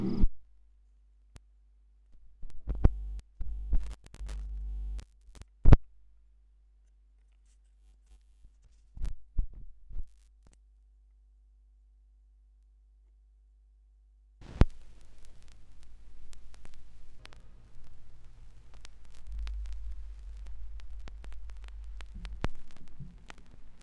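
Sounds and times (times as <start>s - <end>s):
vinyl record noise: 2.5s - 5.7s, 14.4s - 23.8s.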